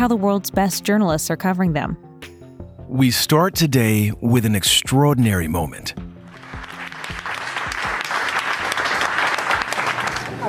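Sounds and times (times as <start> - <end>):
speech: 0.0 - 2.3, 2.9 - 6.0
round of applause for first US Pfizer vaccine recipient: 6.3 - 10.4.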